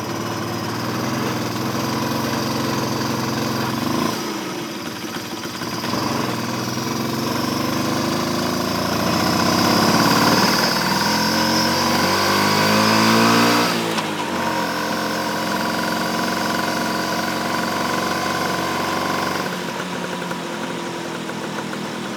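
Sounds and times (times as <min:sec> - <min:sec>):
scooter riding recorded with onboard microphone: 0:00.0 - 0:22.1.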